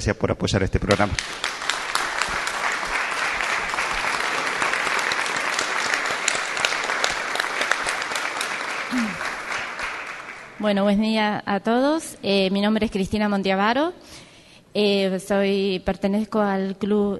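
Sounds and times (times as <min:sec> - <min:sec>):
speech: 0:00.0 - 0:01.6, 0:10.6 - 0:14.2, 0:14.8 - 0:17.1
audience applause: 0:00.9 - 0:10.6.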